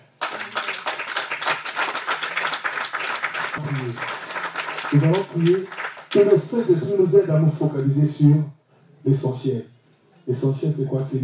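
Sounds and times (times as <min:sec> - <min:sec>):
audience applauding and cheering: 0:00.0 - 0:06.4
speech: 0:03.6 - 0:04.2, 0:04.9 - 0:09.7, 0:10.3 - 0:11.2.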